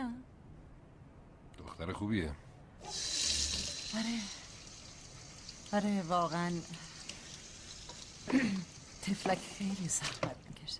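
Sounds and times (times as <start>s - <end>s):
speech: 1.8s - 3.0s, 3.9s - 4.4s, 5.7s - 6.9s, 8.2s - 10.7s
tap water running while hands are washed: 2.8s - 10.6s.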